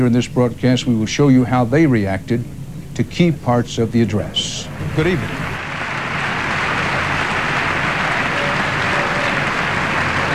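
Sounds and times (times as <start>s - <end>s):
speech: 0.0s - 5.5s
chamber audience applauding: 4.8s - 10.3s.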